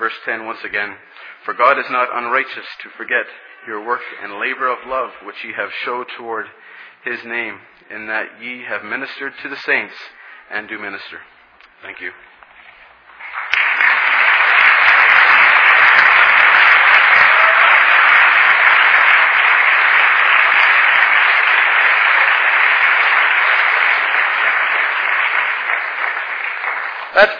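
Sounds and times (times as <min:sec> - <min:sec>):
speech: 0:00.1 - 0:12.3, 0:27.2 - 0:27.3
audience applause after a sermon: 0:13.2 - 0:27.3.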